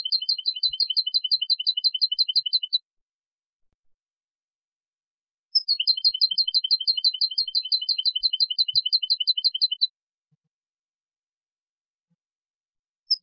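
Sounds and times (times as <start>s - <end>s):
European goldfinch Carduelis carduelis singing with twittering bursts and trills: 0.0s - 2.8s, 5.5s - 9.9s.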